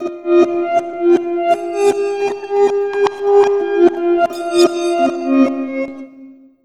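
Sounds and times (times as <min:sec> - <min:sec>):
reversed strings effect: 0:00.0 - 0:06.0.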